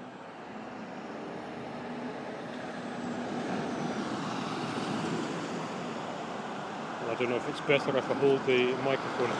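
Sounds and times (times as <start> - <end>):
street traffic going by: 0.0 - 9.3
speech: 7.1 - 9.3.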